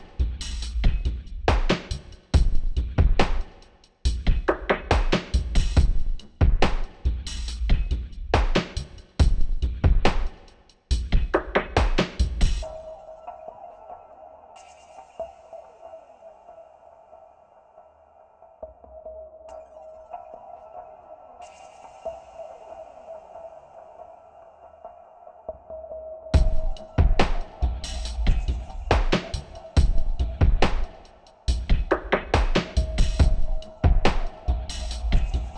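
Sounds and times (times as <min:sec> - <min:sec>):
rhythm track: 0:00.0 - 0:15.9, 0:26.4 - 0:35.5.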